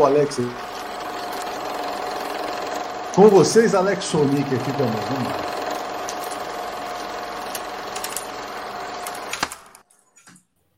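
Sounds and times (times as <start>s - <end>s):
speech: 0.0s - 0.7s, 3.2s - 5.6s
film projector running: 0.0s - 9.8s.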